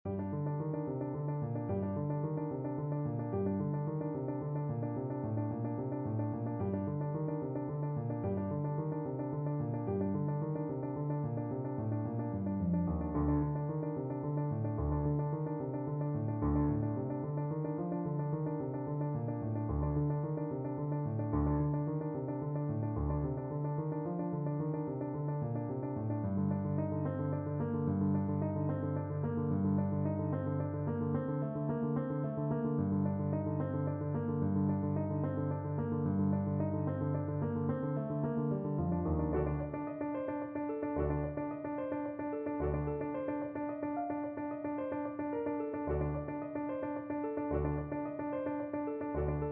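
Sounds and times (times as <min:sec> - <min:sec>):
piano: 0:00.0 - 0:49.5.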